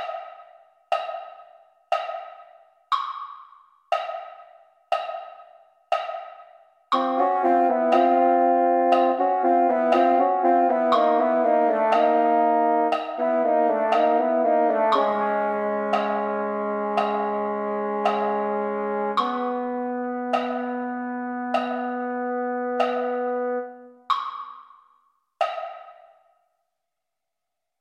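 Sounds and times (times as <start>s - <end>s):
mellophone: 7.0s - 24.0s.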